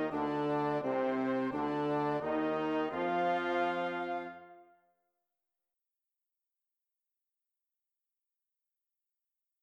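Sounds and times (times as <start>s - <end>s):
slow clarinet: 0.0s - 4.7s.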